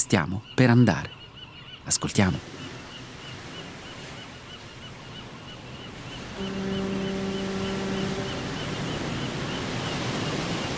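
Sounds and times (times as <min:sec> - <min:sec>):
speech: 0:00.0 - 0:01.2, 0:01.9 - 0:02.6
ship's horn blast in a harbor: 0:06.2 - 0:10.6.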